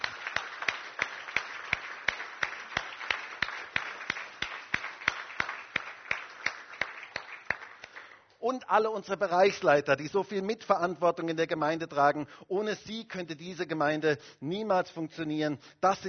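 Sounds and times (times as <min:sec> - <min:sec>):
audience applauding: 0:00.0 - 0:08.2
sharp steady rhythmic claps: 0:00.0 - 0:08.4
speech: 0:08.4 - 0:16.0.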